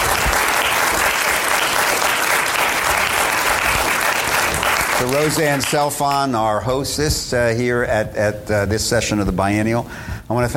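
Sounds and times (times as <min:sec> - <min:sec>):
audience applause: 0:00.0 - 0:06.1
speech: 0:05.0 - 0:10.5.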